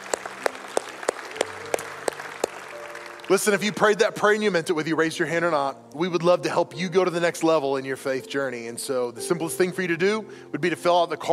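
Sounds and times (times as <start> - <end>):
audience applause in rhythmic unison: 0.0 - 4.4
speech: 3.3 - 11.3.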